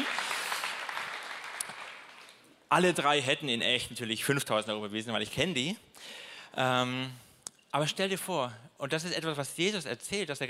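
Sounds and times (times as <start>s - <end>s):
audience applause: 0.0s - 2.4s
speech: 2.7s - 10.4s.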